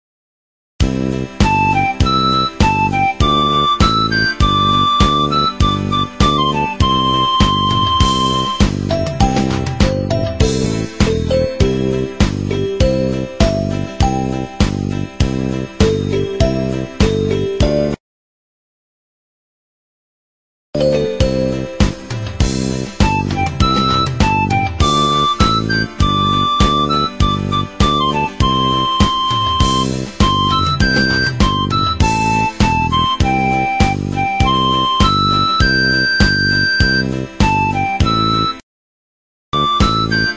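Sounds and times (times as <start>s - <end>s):
instrumental music beat: 0.8s - 18.0s, 20.8s - 38.6s, 39.6s - 40.3s.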